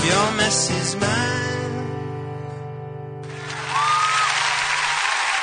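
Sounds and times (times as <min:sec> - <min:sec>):
speech: 0:00.1 - 0:01.6
crowd applauding: 0:03.3 - 0:05.4.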